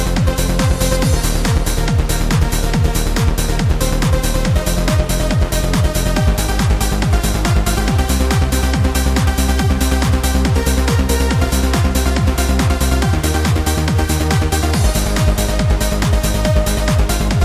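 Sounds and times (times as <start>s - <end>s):
trance MIDI music: 0.0s - 17.4s.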